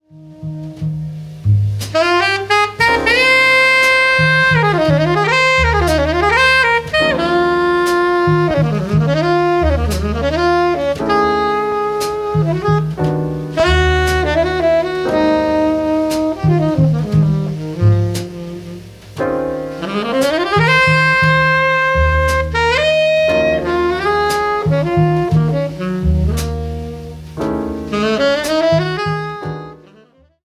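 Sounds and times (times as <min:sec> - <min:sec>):
jazz saxophone: 0:00.0 - 0:30.4.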